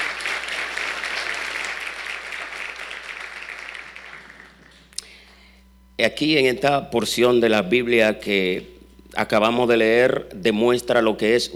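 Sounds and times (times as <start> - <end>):
applause: 0.0 - 5.0
speech: 6.0 - 11.5.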